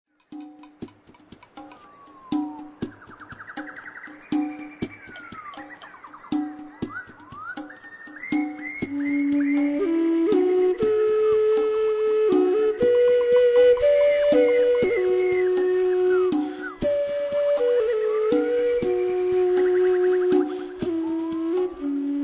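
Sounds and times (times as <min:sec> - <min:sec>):
royalty-free music: 0:00.1 - 0:22.2.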